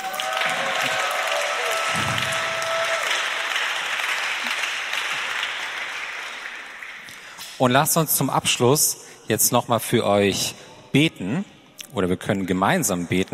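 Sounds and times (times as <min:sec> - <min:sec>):
audience applauding: 0:00.0 - 0:07.4
speech: 0:07.6 - 0:13.3.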